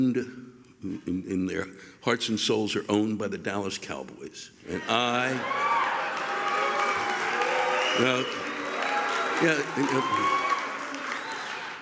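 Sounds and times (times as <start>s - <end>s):
speech: 0.0s - 5.7s, 8.0s - 8.4s, 9.4s - 10.4s
crowd booing: 4.7s - 11.7s.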